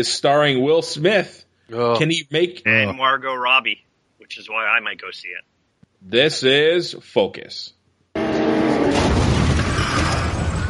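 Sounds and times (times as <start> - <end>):
speech: 0.0 - 7.8
low engine roar: 8.2 - 9.3
car crash: 8.3 - 10.6.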